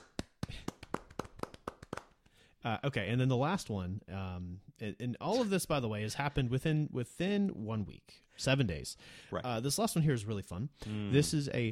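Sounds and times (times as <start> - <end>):
sparse audience applause of a few hands: 0.0 - 2.2
speech: 2.6 - 11.7.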